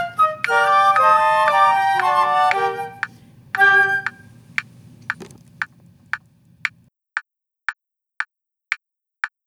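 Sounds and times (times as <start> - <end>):
quartet with percussion: 0.0 - 4.2.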